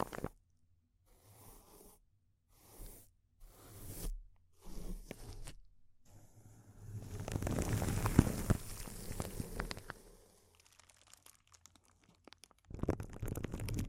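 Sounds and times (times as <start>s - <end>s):
plastic or foil crinkling: 7.0s - 13.8s.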